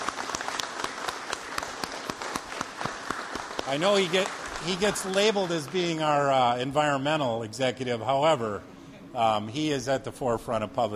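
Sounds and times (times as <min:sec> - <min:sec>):
round of applause: 0:00.0 - 0:06.2
speech: 0:03.7 - 0:10.9.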